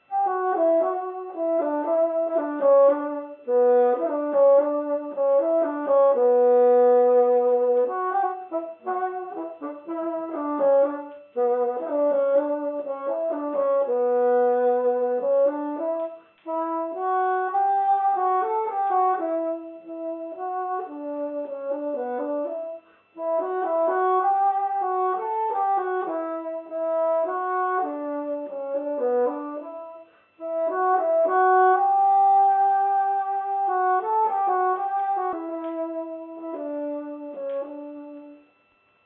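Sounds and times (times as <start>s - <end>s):
bassoon: 0.0s - 38.5s.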